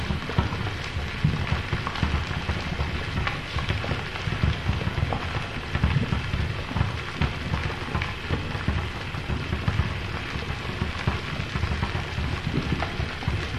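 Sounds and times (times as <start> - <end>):
witches' cauldron bubbling: 0.0 - 13.5.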